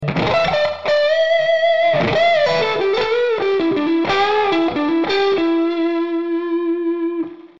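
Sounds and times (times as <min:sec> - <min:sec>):
dirty blues guitar lead on neck and middle pickups: 0:00.0 - 0:07.5.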